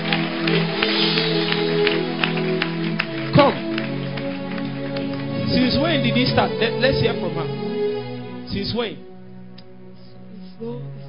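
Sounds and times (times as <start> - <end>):
audience clapping: 0.0 - 8.3
speech: 6.1 - 7.6, 8.5 - 9.1, 10.6 - 11.0.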